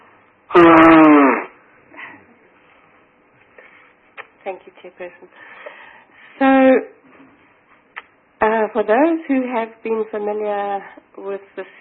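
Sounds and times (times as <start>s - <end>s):
person blowing nose: 0.5s - 1.6s
speech: 4.5s - 5.7s, 8.7s - 11.7s.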